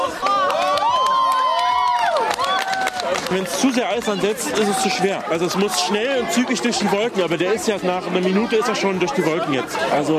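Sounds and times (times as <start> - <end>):
school students cheering at the launch of a giant helium balloon from an airfield: 0.0 - 6.8
speech: 3.3 - 10.1.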